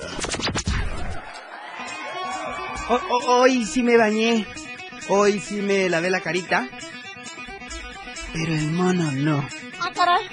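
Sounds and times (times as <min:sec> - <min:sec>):
crowd roar and whoops: 0:00.8 - 0:03.8
audience applause and cheering: 0:00.9 - 0:04.2
speech: 0:02.9 - 0:06.9, 0:08.3 - 0:10.3.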